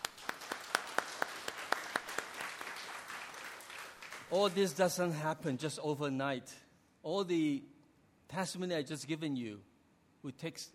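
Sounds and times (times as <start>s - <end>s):
audience applause: 0.0s - 4.7s
speech: 4.3s - 7.7s, 8.3s - 10.7s.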